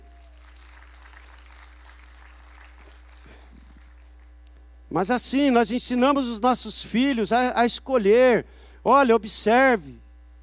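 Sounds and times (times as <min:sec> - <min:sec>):
audience applauding: 0:00.0 - 0:04.3
speech: 0:04.9 - 0:10.0.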